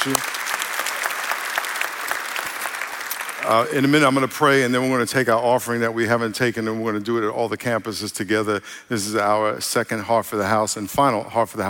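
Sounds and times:
speech: 0.0s - 0.4s, 3.4s - 11.6s
audience applause: 0.0s - 4.3s.

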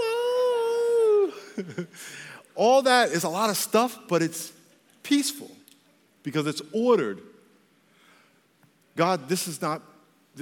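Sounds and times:
person imitating a coyote howl: 0.0s - 1.4s
speech: 1.6s - 5.6s, 6.2s - 7.3s, 9.0s - 10.3s.

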